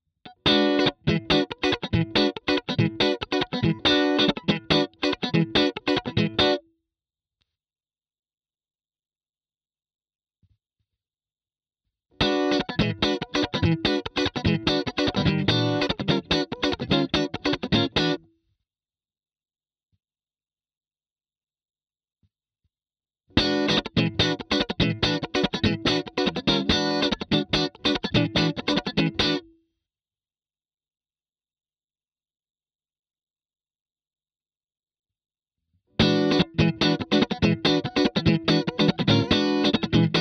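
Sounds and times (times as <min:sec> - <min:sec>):
funk music: 0:00.5 - 0:06.6, 0:12.2 - 0:18.2, 0:23.4 - 0:29.4, 0:36.0 - 0:40.1.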